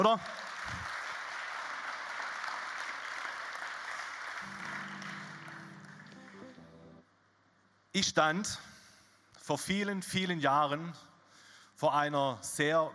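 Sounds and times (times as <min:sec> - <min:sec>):
speech: 0:00.0 - 0:00.4, 0:08.0 - 0:08.7, 0:09.5 - 0:11.1, 0:11.8 - 0:12.9
crowd applauding for the band: 0:00.0 - 0:07.0
low musical tone: 0:04.4 - 0:07.1.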